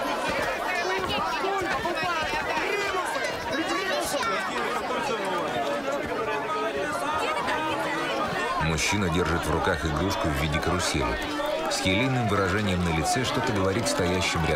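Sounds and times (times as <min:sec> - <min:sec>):
crowd chatter on a busy square: 0:00.0 - 0:14.5
speech: 0:08.8 - 0:14.5.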